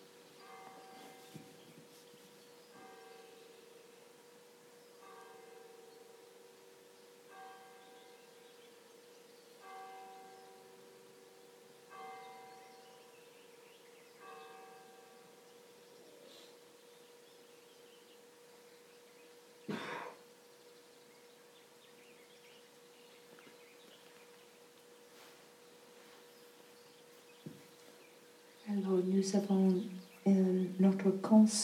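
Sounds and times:
church bells ringing: 0.4s - 1.6s, 2.7s - 15.8s
speech: 28.7s - 31.6s.

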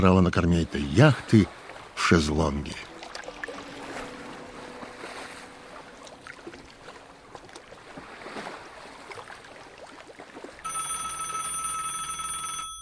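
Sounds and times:
speech: 0.0s - 2.9s
gentle washing waves: 0.0s - 11.2s
loud electronic telephone ring: 10.6s - 12.8s.

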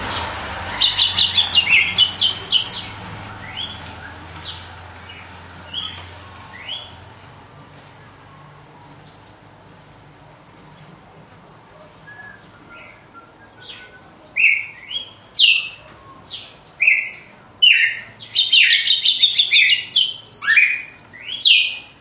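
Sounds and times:
Red-cowled cardinal whistling: 0.7s - 4.6s, 11.8s - 21.9s.

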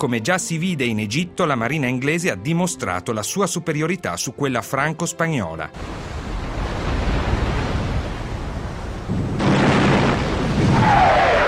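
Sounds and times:
speech: 0.0s - 6.2s
wind at sea off Cape Trafalgar in southern Spain: 5.8s - 11.4s.

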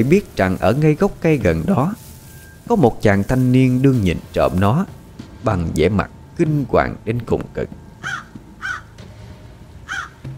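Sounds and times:
speech: 0.0s - 2.0s, 2.7s - 8.2s
crow cawing: 8.0s - 9.1s, 9.8s - 10.3s.

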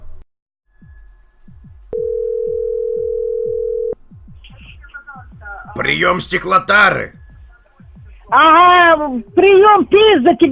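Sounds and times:
repeating low thumping beat: 0.8s - 2.0s, 4.0s - 10.5s
telephone tone after caller hangs up: 1.9s - 4.0s
speech: 5.8s - 7.2s, 8.3s - 10.5s.

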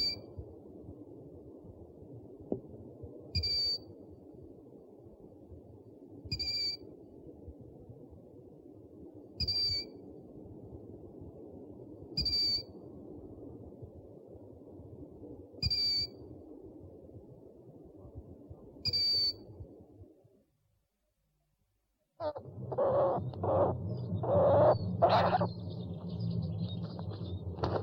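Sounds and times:
owl hooting: 9.4s - 9.9s, 22.2s - 27.8s.

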